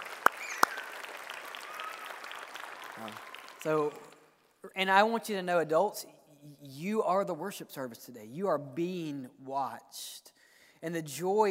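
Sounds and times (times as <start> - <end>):
audience applause: 0.0 - 4.2
speech: 3.0 - 11.4.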